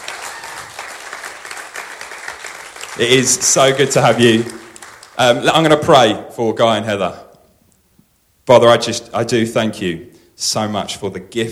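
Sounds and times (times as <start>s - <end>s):
congregation applause welcoming guests at a church service: 0.0s - 5.7s
speech: 3.0s - 4.6s, 5.2s - 7.2s, 8.5s - 11.5s.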